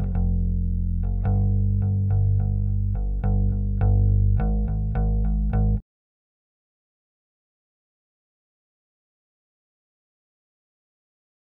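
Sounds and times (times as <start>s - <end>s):
bass: 0.0s - 5.8s.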